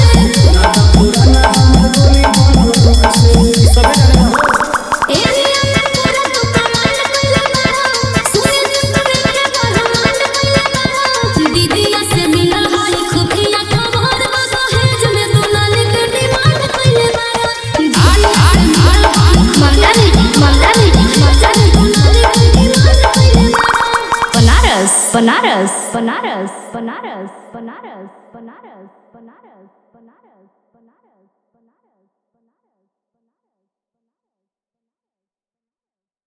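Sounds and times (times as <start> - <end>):
Bhojpuri DJ remix song: 0.0 - 27.6.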